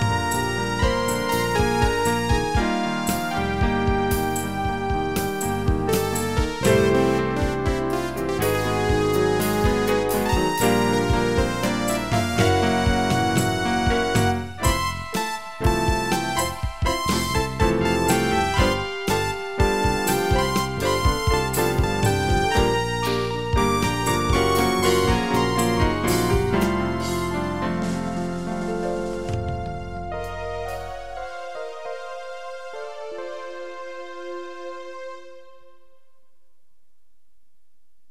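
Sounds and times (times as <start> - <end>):
bossa nova song with musical saw lead: 0.0 - 35.5.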